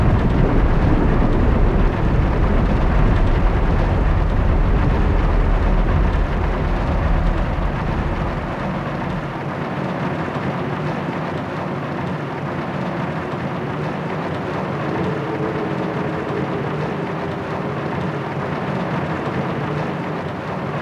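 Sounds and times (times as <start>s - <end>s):
galleon interior ambience: 0.0s - 20.7s.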